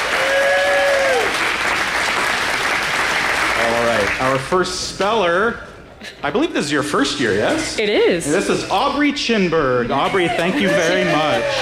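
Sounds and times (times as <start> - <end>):
audience applause: 0.0 - 4.5, 10.2 - 11.6
speech: 4.2 - 11.6.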